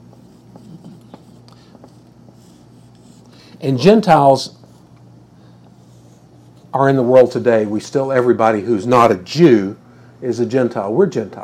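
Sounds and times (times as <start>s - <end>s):
handwriting during a lecture: 0.0s - 4.9s
speech: 3.6s - 4.6s, 6.8s - 11.4s.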